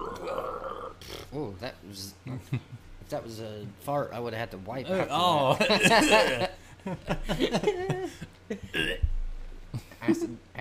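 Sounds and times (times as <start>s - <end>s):
deliberate guttural burp: 0.0s - 1.3s, 8.7s - 9.1s
speech: 1.3s - 9.1s, 10.1s - 10.5s
laughter: 5.4s - 8.7s.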